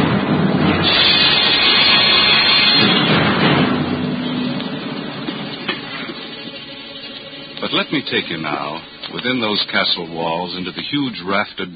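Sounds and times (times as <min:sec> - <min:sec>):
storm raging around castle battlements: 0:00.0 - 0:09.0
speech: 0:07.7 - 0:11.7.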